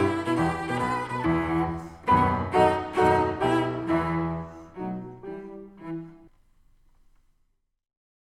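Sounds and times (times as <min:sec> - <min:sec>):
cello sonata in C major: 0:00.0 - 0:06.6.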